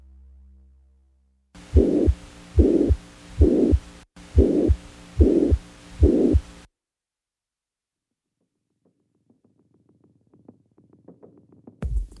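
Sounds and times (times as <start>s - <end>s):
faint low rumble: 0.0s - 6.7s
heart sounds with a systolic ejection murmur: 1.7s - 6.6s.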